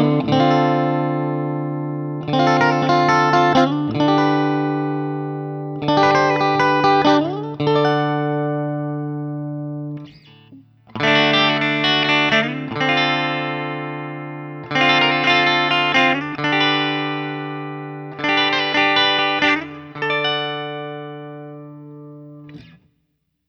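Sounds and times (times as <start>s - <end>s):
Guild X92 Citron electric guitar clean tone: 0.0s - 22.9s.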